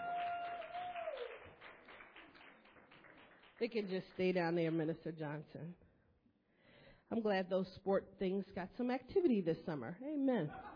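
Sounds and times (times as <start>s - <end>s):
audience applause: 0.0s - 3.7s
speech: 3.6s - 5.8s, 7.1s - 10.7s.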